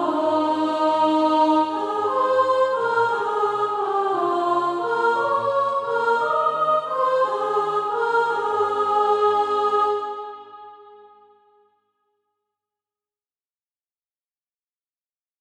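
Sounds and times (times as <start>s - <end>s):
soprano singing SATB practice music: 0.0s - 10.7s.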